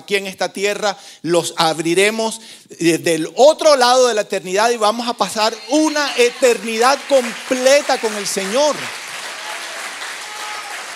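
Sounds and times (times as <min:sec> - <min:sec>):
speech: 0:00.1 - 0:09.0
audience applause: 0:05.5 - 0:10.9.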